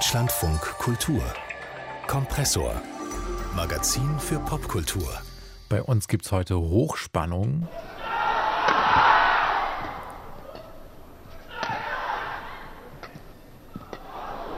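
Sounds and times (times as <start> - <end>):
speech: 0.1 - 1.5, 2.1 - 8.0
badminton arena crowd cheering at Olympic badminton final: 7.8 - 10.8, 11.4 - 12.9, 13.9 - 14.5.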